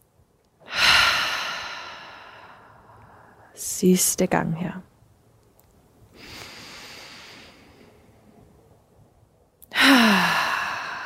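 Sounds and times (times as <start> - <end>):
deep inhale through the nose during a guided relaxation exercise: 0.7 - 3.4, 6.2 - 8.1, 9.8 - 11.0
speech: 3.6 - 4.9.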